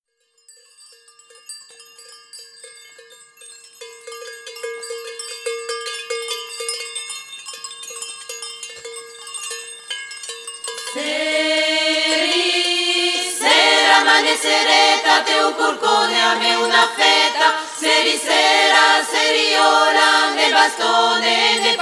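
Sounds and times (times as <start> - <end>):
traditional Corsican chant: 10.9 - 21.8.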